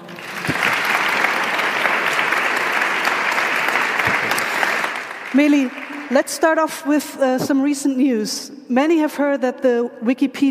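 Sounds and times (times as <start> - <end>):
audience applause: 0.0 - 6.2
speech: 5.4 - 10.4.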